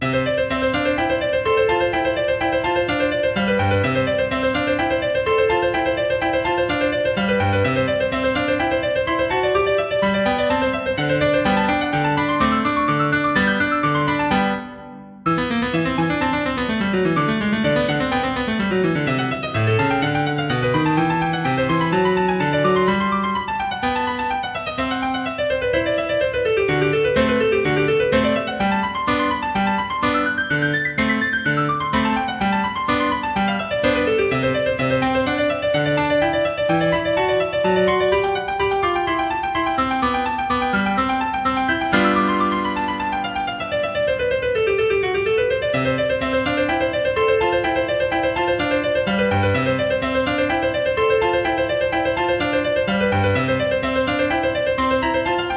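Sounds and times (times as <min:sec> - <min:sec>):
piano etude: 0:00.0 - 0:55.5.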